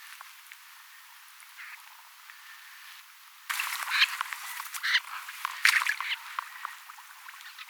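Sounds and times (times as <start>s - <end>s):
snipe flight calls from several birds: 3.5s - 6.8s.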